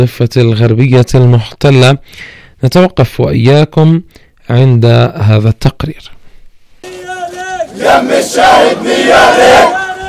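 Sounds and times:
speech: 0.0 - 6.2, 7.8 - 9.8
crowd of young men chanting loudly: 6.8 - 10.0.

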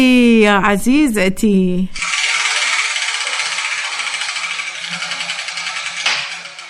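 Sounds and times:
speech: 0.0 - 2.0
letter wheel spinning with balls tumbling inside: 2.0 - 6.6.

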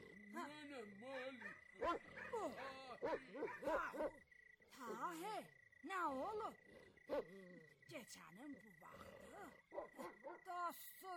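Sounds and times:
speech: 0.4 - 11.1
rabid dogs barking and yelping: 1.2 - 4.2, 7.1 - 7.3, 9.7 - 10.5.

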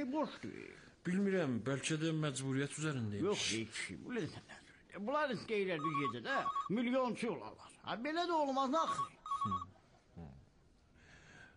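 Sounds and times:
speech: 0.0 - 10.3
telephone ringing: 5.8 - 6.8, 8.8 - 9.7.

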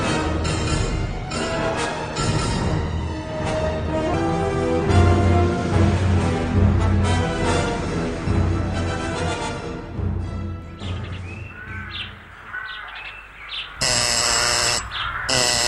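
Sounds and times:
busy music-like background with chirping tones: 0.0 - 13.1
harsh loud doorbell buzzer at the door: 13.8 - 15.6.

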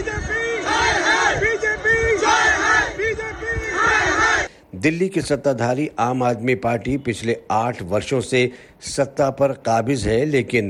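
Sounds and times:
AAP party workers chanting slogans at a Delhi protest: 0.0 - 4.5
speech: 4.8 - 10.6.

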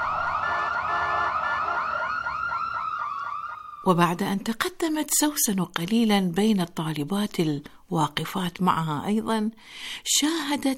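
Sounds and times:
ambulance siren wailing: 0.0 - 4.0
speech: 3.8 - 10.7.

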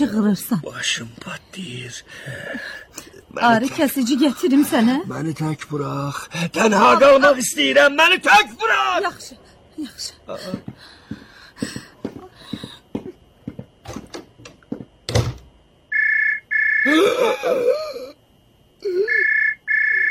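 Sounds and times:
speech: 0.0 - 11.0, 16.9 - 17.8
sharp knocks and clatter: 11.6 - 15.5
telephone ringing: 15.9 - 16.9, 19.2 - 20.0.

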